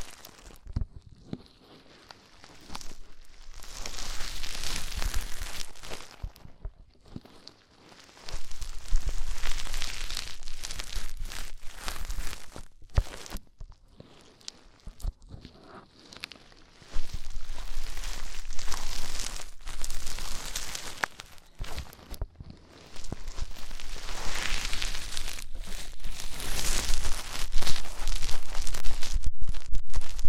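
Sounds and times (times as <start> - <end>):
ear cleaning crackling, scratching and rustling: 0.0 - 30.2.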